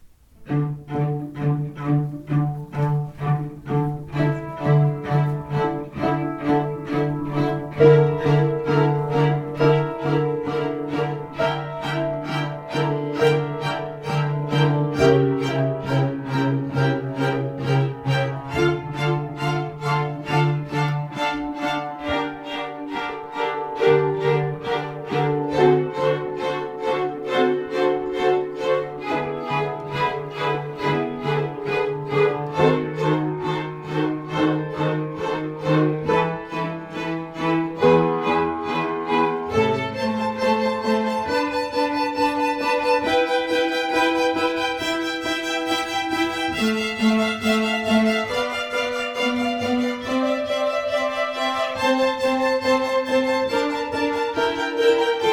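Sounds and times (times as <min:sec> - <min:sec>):
string ensemble playing: 0:00.0 - 0:55.3.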